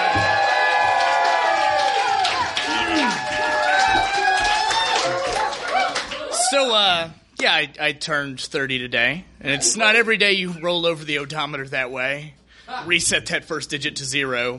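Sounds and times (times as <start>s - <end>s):
audience applause and cheering: 0.0s - 6.8s
speech: 6.6s - 14.5s.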